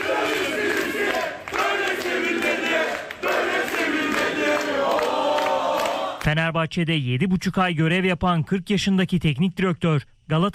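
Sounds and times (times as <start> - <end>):
fans chanting and cheering at Istanbul Airport: 0.0 - 6.2
speech: 6.2 - 10.5.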